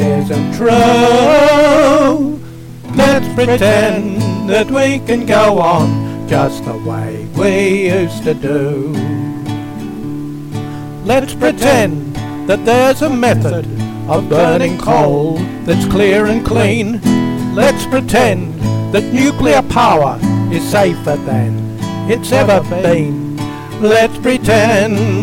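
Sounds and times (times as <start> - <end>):
soprano and tenor singing: 0.0 - 25.2.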